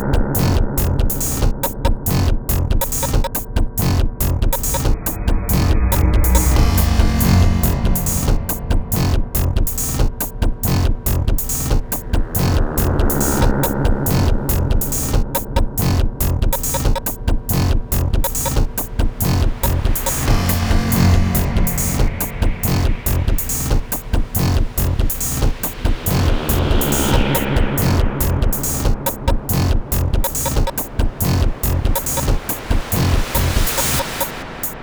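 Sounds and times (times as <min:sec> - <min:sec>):
factory beat of rhythmic synthesized noise: 0:00.0 - 0:34.8.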